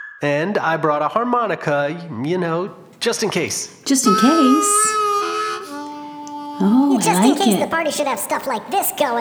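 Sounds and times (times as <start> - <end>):
speech: 0.2 - 5.0, 6.6 - 9.1
slide whistle being played: 3.9 - 7.5.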